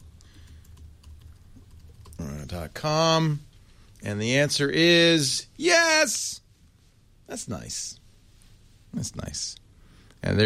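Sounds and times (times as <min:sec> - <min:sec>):
computer keyboard typing: 0:00.0 - 0:02.5
speech: 0:02.5 - 0:06.4, 0:07.3 - 0:08.0, 0:08.9 - 0:09.6, 0:10.2 - 0:10.4.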